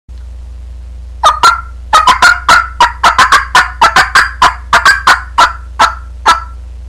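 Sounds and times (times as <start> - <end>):
low hum: 0.1 - 2.0, 4.6 - 6.8
turkey clucking: 1.2 - 6.6.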